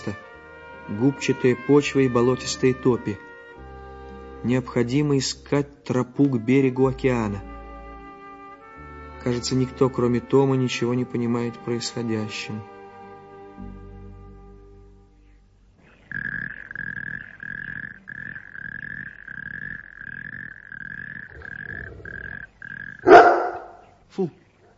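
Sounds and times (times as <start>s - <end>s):
speech: 0.0s - 3.3s, 4.4s - 7.5s, 9.2s - 12.7s, 13.6s - 13.8s, 24.2s - 24.4s
dog growling: 19.0s - 23.8s
dog barking: 23.0s - 23.9s.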